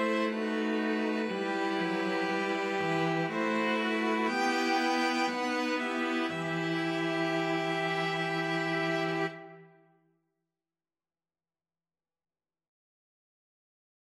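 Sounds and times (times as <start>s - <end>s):
string quartet: 0.0s - 9.7s.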